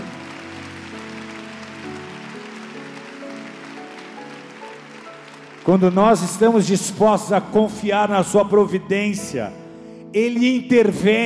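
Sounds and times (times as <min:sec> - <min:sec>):
audience applause: 0:00.0 - 0:07.3
speech: 0:05.6 - 0:11.2.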